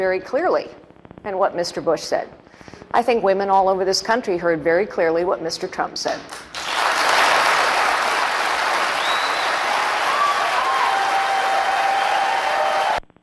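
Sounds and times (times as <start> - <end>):
speech: 0.0 - 6.6
audience applause: 6.3 - 13.0.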